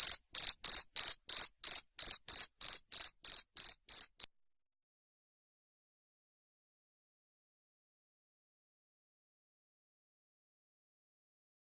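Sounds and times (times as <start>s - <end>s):
cricket chirping: 0.0s - 4.3s.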